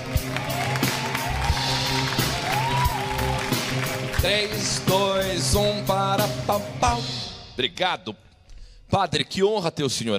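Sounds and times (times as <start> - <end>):
audience applause welcoming a guest: 0.0 - 5.2
speech: 4.2 - 8.3, 8.9 - 10.1.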